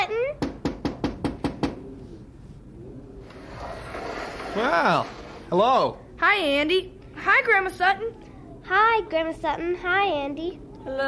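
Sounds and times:
knocking on a window: 0.4 - 1.8
speech: 4.6 - 11.0.

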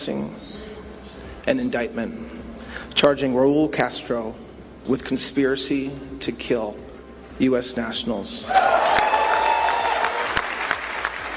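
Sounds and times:
speech: 1.5 - 2.4, 3.0 - 6.8, 7.4 - 8.8
whoops: 8.4 - 10.8
audience clapping: 8.6 - 11.3.

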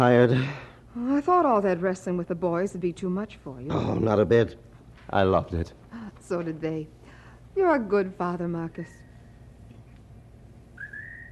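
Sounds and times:
speech: 0.0 - 7.0, 7.6 - 9.0
low hum: 0.0 - 11.3
lonely high whistled bird call at night: 10.8 - 11.3.

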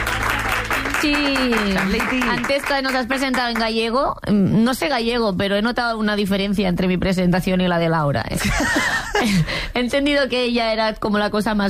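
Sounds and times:
audience applause: 0.0 - 3.6
speech: 1.0 - 11.6.

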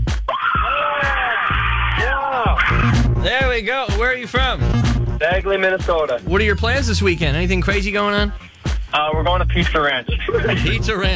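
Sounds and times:
group of friends screaming and yelling: 0.3 - 3.1
laughter: 0.3 - 3.1, 10.0 - 11.1
speech: 3.6 - 11.1.

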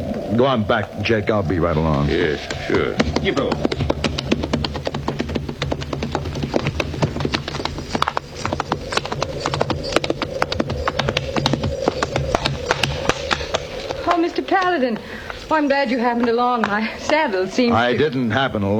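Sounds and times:
horse hooves clopping as a woman rides on horseback: 0.0 - 18.7
speech: 0.3 - 3.8, 14.8 - 18.7.

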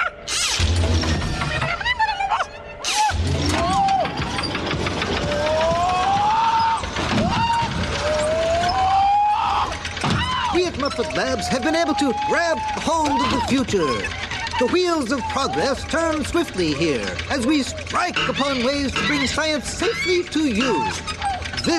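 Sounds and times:
Muppet Labs machine running with mechanical clattering and knocking: 0.2 - 21.7
speech: 11.2 - 21.7.

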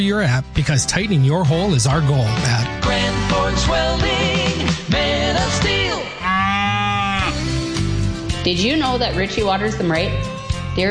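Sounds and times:
speech: 0.0 - 5.7, 8.4 - 10.8
cattle mooing: 6.2 - 7.6.

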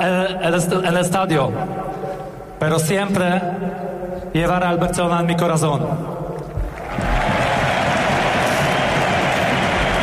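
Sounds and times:
speech: 0.3 - 1.9, 2.6 - 6.2
large stadium crowd applauding and cheering: 6.5 - 10.0.

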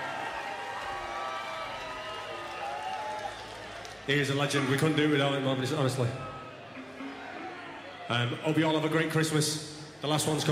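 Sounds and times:
crowd cheering and whooping: 0.0 - 4.0, 6.3 - 8.2
applause: 0.0 - 4.7
speech: 4.1 - 6.3, 8.1 - 10.4.

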